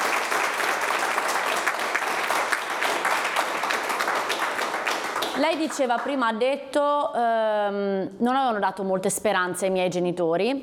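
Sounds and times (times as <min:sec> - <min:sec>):
applause: 0:00.0 - 0:06.3
speech: 0:05.4 - 0:10.6.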